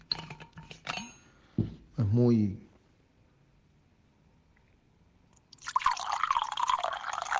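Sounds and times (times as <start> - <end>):
speech: 2.1 - 2.6
whisky pouring from a cork-stoppered bottle into a glass: 5.5 - 7.3.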